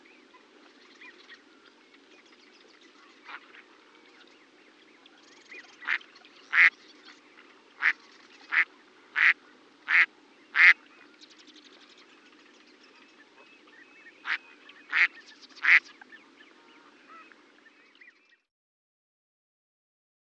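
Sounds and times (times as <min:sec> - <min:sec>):
duck quacking: 0:05.8 - 0:06.7, 0:07.8 - 0:10.8, 0:14.2 - 0:15.8.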